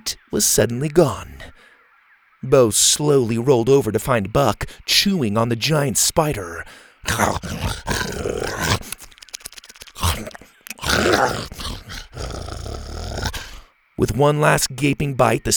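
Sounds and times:
speech: 0.0 - 1.6, 2.4 - 9.0, 10.0 - 10.4, 11.0 - 12.5, 14.0 - 15.5
T Rex roaring triumphantly: 7.1 - 9.0, 9.9 - 13.7.

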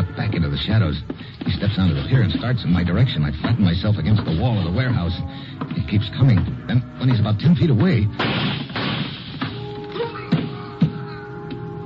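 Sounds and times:
speech: 0.6 - 8.6
gunshots: 8.1 - 9.6.

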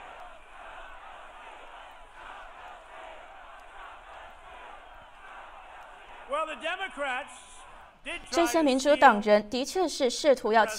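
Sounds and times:
rally crowd chanting in unison: 0.0 - 9.2
speech: 6.4 - 10.7.

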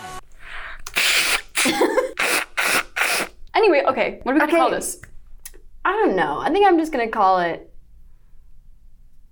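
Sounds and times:
nose blowing: 0.4 - 3.4
speech: 3.8 - 5.1, 5.8 - 7.7.

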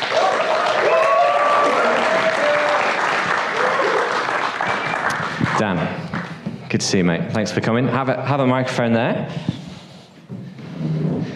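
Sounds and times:
faint cheers and whoops: 0.0 - 4.2
crowd applauding: 0.0 - 6.4
speech: 5.6 - 6.0, 6.7 - 9.6.

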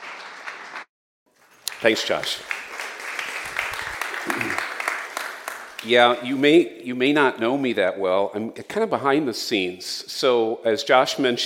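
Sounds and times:
church congregation applauding a guest speaker: 0.0 - 6.4
speech: 1.8 - 2.6, 5.8 - 11.4.

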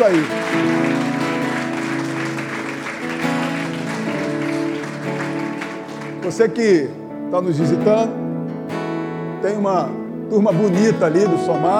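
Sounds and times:
speech: 0.0 - 1.0, 6.2 - 8.2, 9.4 - 11.7
audience applause: 0.0 - 6.8.

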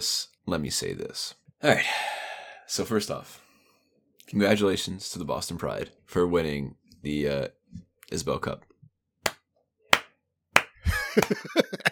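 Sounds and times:
speech: 0.0 - 2.1, 2.7 - 3.4, 4.3 - 8.7, 11.2 - 11.9
sarcastic hand clapping: 9.2 - 11.6
laughter: 10.8 - 11.9.

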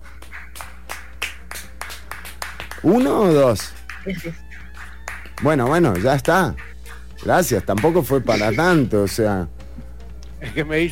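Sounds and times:
people clapping: 0.0 - 6.4, 7.6 - 8.2
low steady hum: 0.0 - 10.8
speech: 2.8 - 4.4, 5.4 - 9.6, 10.5 - 10.8.

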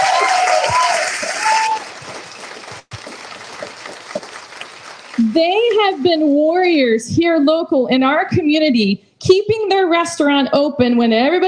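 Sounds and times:
crowd clapping enthusiastically: 0.0 - 6.3
speech: 5.4 - 11.4.

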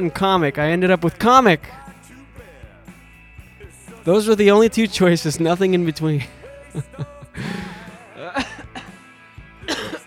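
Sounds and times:
speech: 0.0 - 1.8, 4.0 - 7.6
laughter: 6.2 - 10.0
strained throaty breaths: 7.3 - 8.0
man in a coughing fit: 7.4 - 9.0, 9.7 - 10.0.

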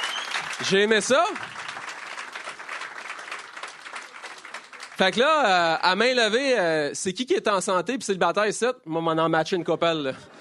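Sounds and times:
audience applause: 0.0 - 5.6
speech: 0.6 - 1.6, 5.0 - 10.3.

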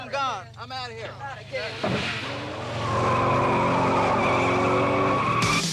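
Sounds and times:
speech: 0.1 - 4.1
car engine roaring: 0.2 - 5.6
car tires squealing: 1.1 - 5.6.

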